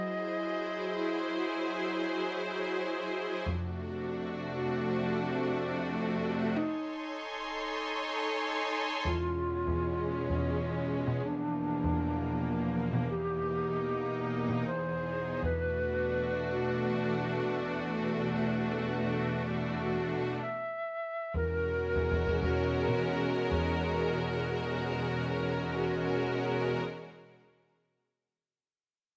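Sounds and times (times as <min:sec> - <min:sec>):
flute: 0:00.0 - 0:27.3
bass: 0:03.4 - 0:06.9, 0:09.1 - 0:27.2.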